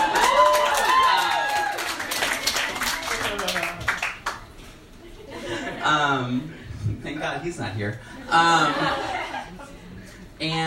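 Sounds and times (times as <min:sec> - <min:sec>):
audience clapping: 0:00.0 - 0:04.6
laughter: 0:05.0 - 0:06.4, 0:08.2 - 0:10.2
speech: 0:05.9 - 0:09.2, 0:10.4 - 0:10.6.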